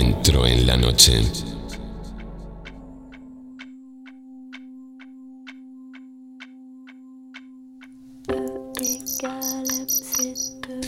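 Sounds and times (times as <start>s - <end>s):
speech: 0.2s - 1.5s
crickets chirping at night: 8.8s - 10.6s.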